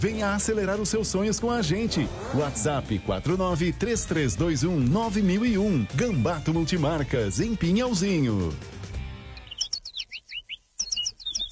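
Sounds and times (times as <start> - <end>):
speech: 0.0 - 8.8
small bird chirping and singing: 9.2 - 11.5.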